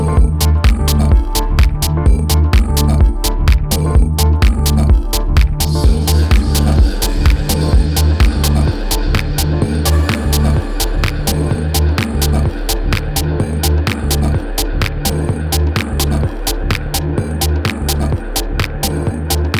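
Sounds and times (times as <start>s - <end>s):
big room dance music vocal mix: 0.0s - 19.5s.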